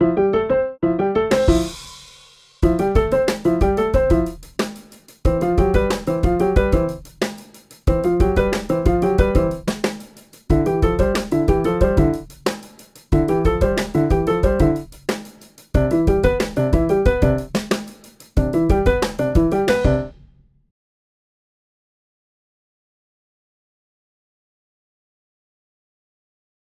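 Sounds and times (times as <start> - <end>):
funk music: 1.1 - 2.0, 2.6 - 20.1.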